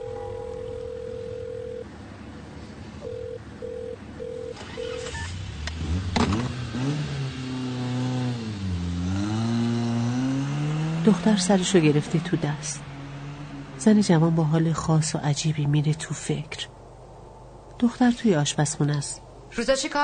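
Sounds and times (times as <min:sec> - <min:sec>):
steady phone tone: 0:00.0 - 0:01.9, 0:03.0 - 0:04.6
car engine revving and driving off: 0:04.5 - 0:16.2
speech: 0:11.1 - 0:12.9, 0:13.8 - 0:16.7, 0:17.8 - 0:20.0.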